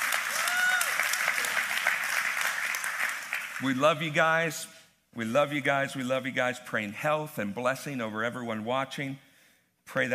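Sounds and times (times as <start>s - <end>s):
church congregation applauding: 0.0s - 4.3s
speech: 3.6s - 9.3s, 9.9s - 10.1s.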